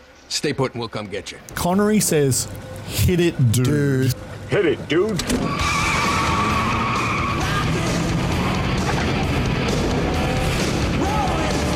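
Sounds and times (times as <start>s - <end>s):
speech: 0.3s - 5.8s
car engine roaring: 2.0s - 11.7s
car speeding off with tires skidding: 5.2s - 11.7s.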